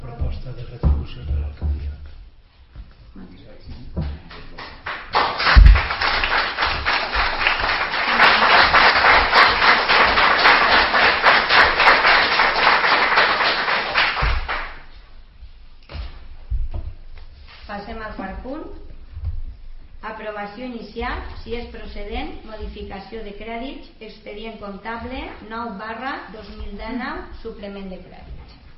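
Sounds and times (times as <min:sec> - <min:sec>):
applause at a council meeting: 0:04.3 - 0:14.9
speech: 0:20.4 - 0:28.6.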